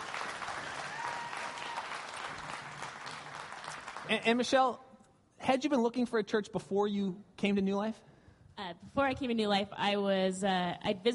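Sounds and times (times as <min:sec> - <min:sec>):
audience clapping: 0:00.0 - 0:04.5
speech: 0:04.1 - 0:04.8, 0:05.5 - 0:11.1.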